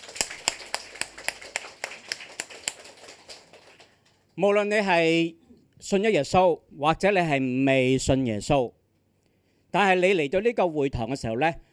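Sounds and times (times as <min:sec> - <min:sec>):
audience applause: 0:00.0 - 0:04.1
speech: 0:04.4 - 0:08.8, 0:09.7 - 0:11.7.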